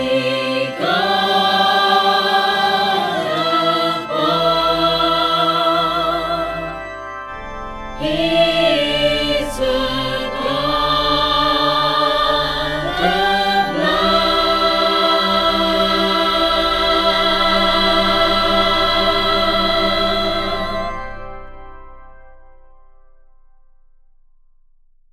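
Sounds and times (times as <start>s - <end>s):
dynamic OrganTeq choir sound: 0.0s - 22.3s.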